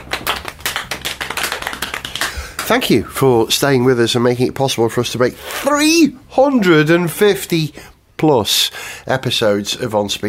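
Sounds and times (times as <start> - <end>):
small applause: 0.0 - 3.0
speech: 2.7 - 10.2.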